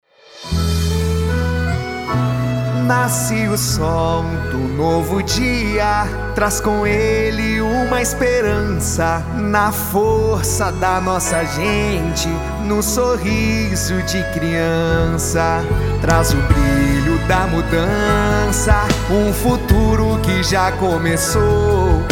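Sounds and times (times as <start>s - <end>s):
jingle for a city councillor: 0.2s - 22.1s.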